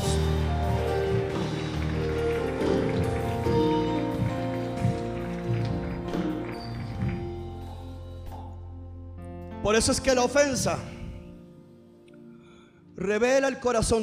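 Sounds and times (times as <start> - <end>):
audience applause: 0.0 - 7.8
speech: 9.6 - 11.0, 13.0 - 14.0.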